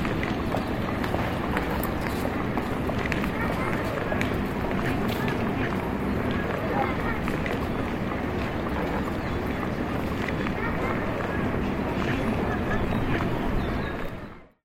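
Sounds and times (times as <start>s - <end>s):
city street sounds and noise: 0.0s - 14.6s.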